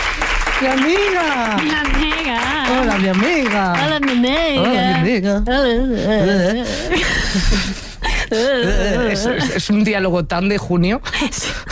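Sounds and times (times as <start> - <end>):
steady applause: 0.0 - 5.0
speech: 0.6 - 11.6.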